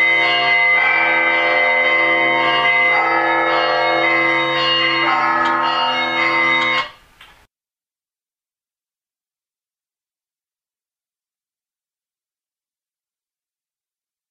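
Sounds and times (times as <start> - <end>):
bell tolling: 0.0 - 7.0.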